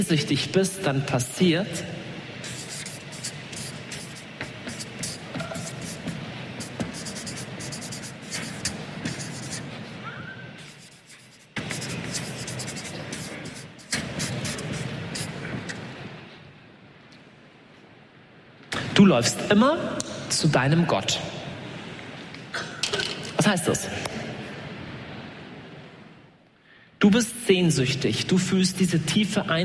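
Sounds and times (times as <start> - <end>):
speech: 0.0 - 2.0, 19.1 - 21.4, 23.5 - 24.1, 27.0 - 29.6
writing a thesis on a board: 2.4 - 9.7, 10.6 - 15.4.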